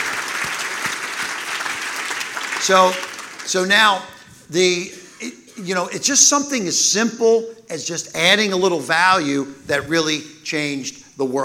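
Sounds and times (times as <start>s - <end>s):
audience applause: 0.0s - 4.1s
speech: 2.6s - 11.4s.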